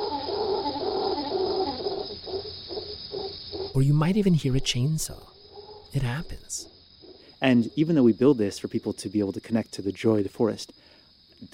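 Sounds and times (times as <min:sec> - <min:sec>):
troop of howler monkeys calling in rainforest: 0:00.0 - 0:08.6
speech: 0:03.8 - 0:05.3, 0:05.9 - 0:06.7, 0:07.4 - 0:10.8.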